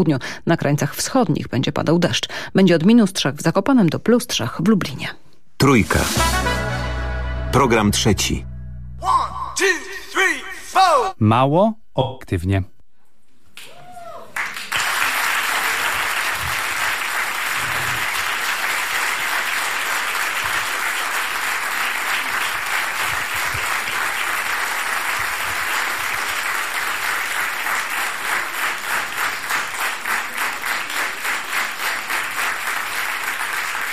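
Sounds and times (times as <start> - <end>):
speech: 0.0 - 6.5, 7.5 - 12.7
audience applause welcoming hosts: 14.4 - 33.9.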